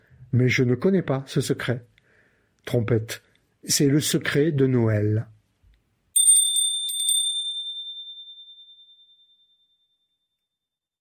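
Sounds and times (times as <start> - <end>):
speech: 0.3 - 1.9, 2.6 - 5.4
doorbell chime ringing: 6.2 - 9.9.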